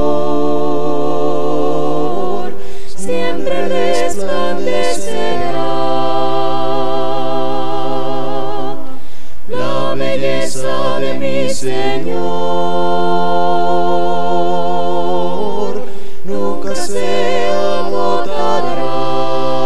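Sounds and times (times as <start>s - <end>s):
a cappella hymn singing: 0.0s - 19.6s.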